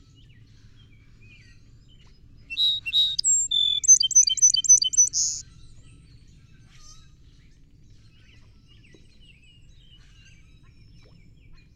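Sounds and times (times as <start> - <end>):
song sparrow singing: 2.5 - 5.4.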